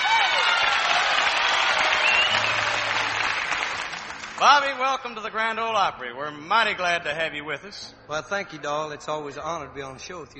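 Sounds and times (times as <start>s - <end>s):
audience applause: 0.0s - 4.8s
speech: 4.5s - 10.3s.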